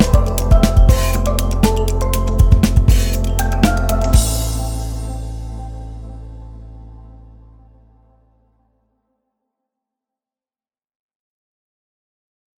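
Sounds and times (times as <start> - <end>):
light tension music: 0.0 - 8.5.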